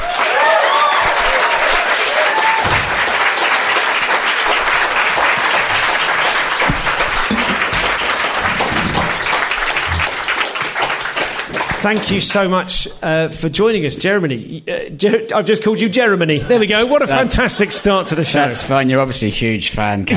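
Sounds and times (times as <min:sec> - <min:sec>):
audience applause: 0:00.0 - 0:12.4
speech: 0:11.8 - 0:20.1.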